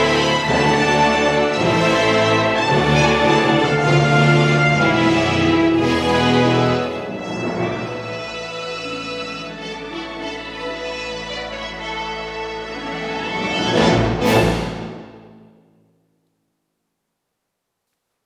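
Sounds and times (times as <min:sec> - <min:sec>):
full brass ensemble playing: 0:00.0 - 0:15.5.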